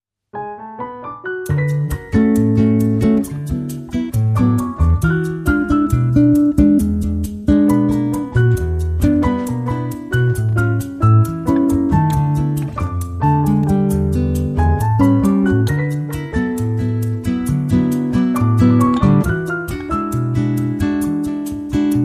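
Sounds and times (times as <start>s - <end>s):
bossa nova music: 1.2s - 22.0s.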